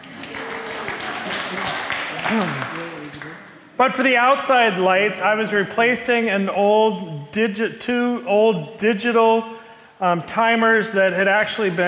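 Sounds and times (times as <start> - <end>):
applause: 0.0 - 3.5
speech: 2.2 - 2.8, 3.8 - 11.8.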